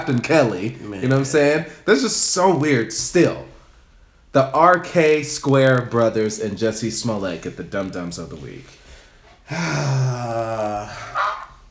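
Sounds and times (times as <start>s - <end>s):
speech: 0.0s - 3.5s, 4.4s - 8.8s, 9.5s - 11.1s
duck quacking: 11.1s - 11.6s.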